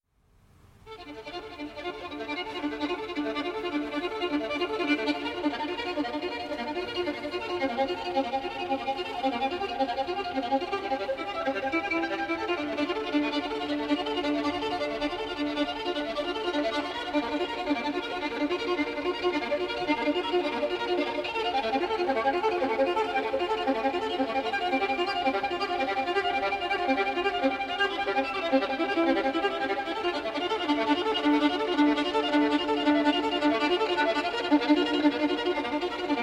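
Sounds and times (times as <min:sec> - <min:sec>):
solo violin: 0:00.4 - 0:36.2
string orchestra: 0:00.8 - 0:36.2.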